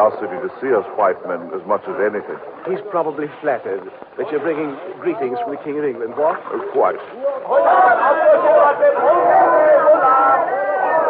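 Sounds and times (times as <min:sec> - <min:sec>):
speech: 0:00.0 - 0:09.9
crowd cheering and shouting: 0:07.1 - 0:11.0.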